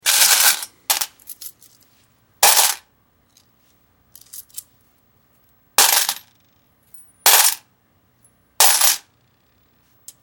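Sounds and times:
coins dropping into a metal bucket with light handling: 0.0s - 1.8s, 2.4s - 2.8s, 4.2s - 4.6s, 5.8s - 6.3s, 7.0s - 7.6s, 8.6s - 9.1s.

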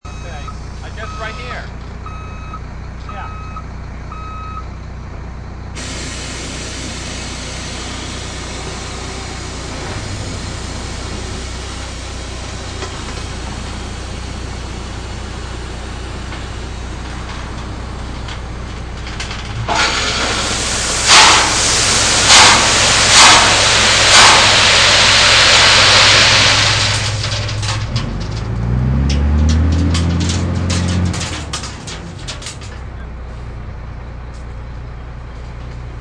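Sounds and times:
dump truck dumping gravel: 5.8s - 33.6s.

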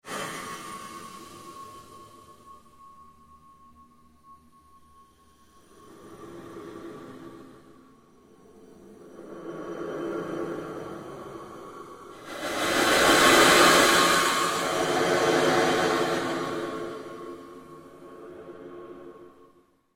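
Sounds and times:
long pulse sweep made by manipulating other sounds: 9.2s - 19.6s.

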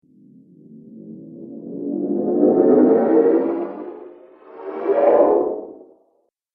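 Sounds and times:
scary zoom whoosh: 1.2s - 6.0s.

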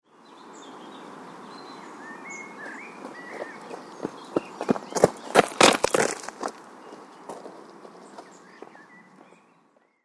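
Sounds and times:
footsteps running on a gravel path: 2.6s - 9.4s.

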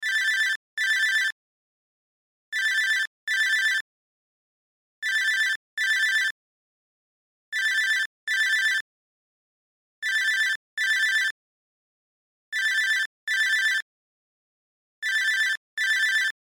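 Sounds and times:
cell phone ringtone: 0.0s - 1.4s, 2.6s - 3.8s, 5.0s - 6.4s, 7.6s - 8.8s, 10.0s - 11.4s, 12.6s - 13.9s, 15.0s - 16.4s.

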